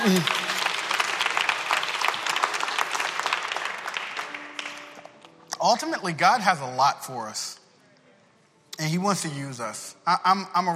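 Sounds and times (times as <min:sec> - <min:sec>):
speech: 0:00.0 - 0:00.4, 0:05.6 - 0:07.6, 0:08.8 - 0:10.7
audience clapping: 0:00.0 - 0:05.8.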